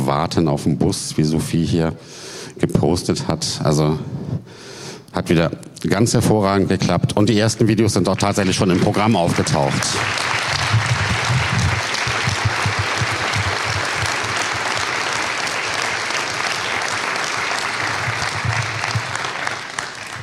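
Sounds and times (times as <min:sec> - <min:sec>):
speech: 0:00.1 - 0:10.5
audience applause: 0:08.2 - 0:20.2.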